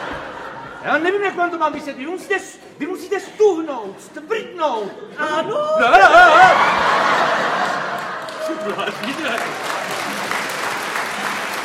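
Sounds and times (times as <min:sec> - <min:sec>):
laughter: 0:00.0 - 0:02.4, 0:04.7 - 0:11.6
speech: 0:00.8 - 0:06.9, 0:08.5 - 0:09.7
audience applause: 0:06.4 - 0:11.6.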